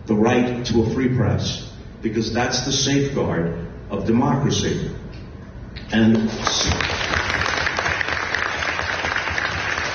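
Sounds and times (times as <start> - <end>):
speech: 0.1 - 5.0, 5.9 - 7.0
audience clapping for the First Amendment during a talk about the free press: 6.1 - 9.9.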